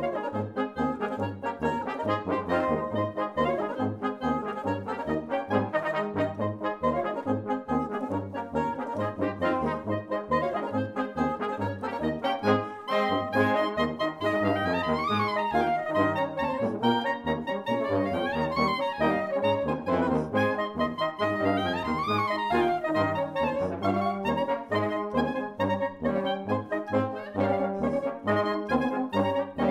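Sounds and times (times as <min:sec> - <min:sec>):
German band playing polka medley: 0:00.0 - 0:29.7.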